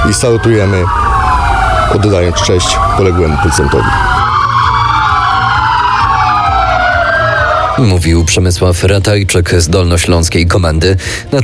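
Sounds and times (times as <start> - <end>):
police car sirens sounding in tribute: 0.0 - 8.9
speech: 0.1 - 1.1, 1.9 - 4.2, 7.8 - 11.4.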